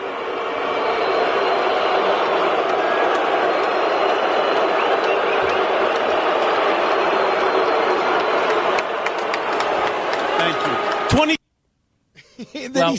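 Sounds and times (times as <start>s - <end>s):
stadium crowd booing: 0.0s - 11.3s.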